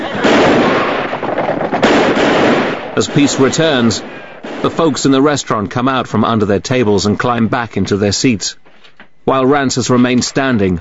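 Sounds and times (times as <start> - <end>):
pistol shots in a film scene: 0.1 - 4.9
speech: 3.0 - 8.6, 9.2 - 10.7.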